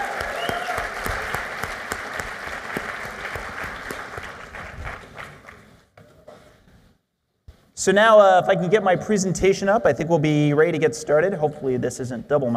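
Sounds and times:
audience round of applause: 0.0 - 5.8
speech: 7.8 - 12.5.

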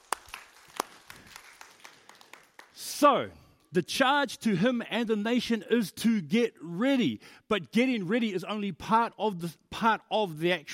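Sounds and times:
audience applause: 0.0 - 2.8
speech: 3.0 - 10.7.

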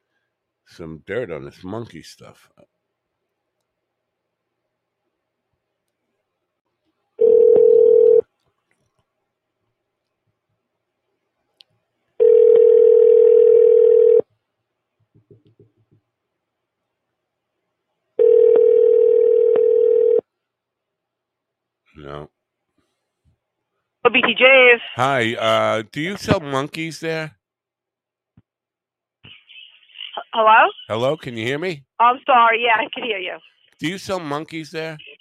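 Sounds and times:
speech: 0.7 - 2.7, 24.3 - 27.4, 30.4 - 35.1
steady low telephone tone: 7.2 - 8.3, 12.2 - 14.2, 18.2 - 20.3.

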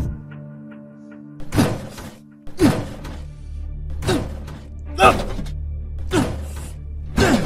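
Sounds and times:
door battered open with heavy splintering blows: 1.4 - 3.3, 3.9 - 7.4.

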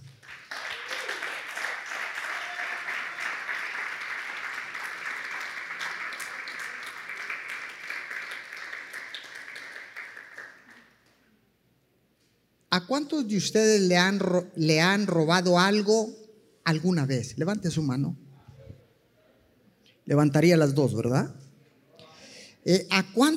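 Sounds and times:
audience applause: 0.0 - 11.2
speech: 12.8 - 18.2, 20.1 - 21.4, 22.6 - 23.3.

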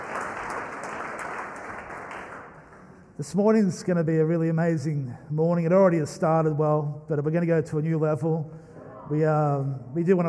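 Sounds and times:
church congregation applauding the worship team: 0.0 - 3.2
speech: 3.2 - 10.2.

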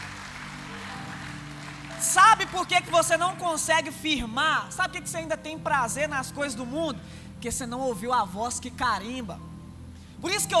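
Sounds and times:
audience applauding: 0.0 - 3.7
sustained low musical tones: 0.0 - 10.5
speech: 2.0 - 9.5, 10.2 - 10.5.

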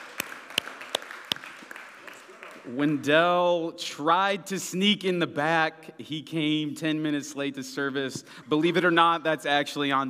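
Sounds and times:
audience applause: 0.0 - 2.8
speech: 2.6 - 10.0.

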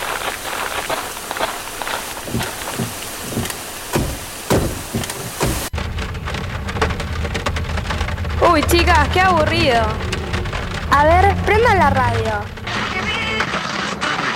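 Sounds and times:
rainstorm pouring down: 0.0 - 13.7
low rumble: 5.7 - 13.2
speech: 8.6 - 10.1, 10.9 - 12.6.

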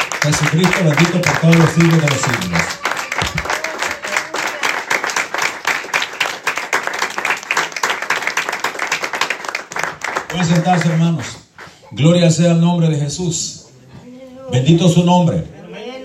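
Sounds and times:
audience applauding: 0.0 - 11.8
speech: 0.2 - 3.5, 10.3 - 13.6, 14.5 - 15.6.

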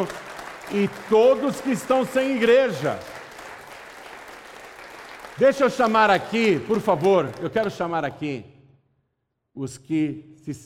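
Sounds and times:
speech: 0.0 - 3.2, 5.4 - 8.5, 9.6 - 10.6
audience applause: 0.0 - 8.0.

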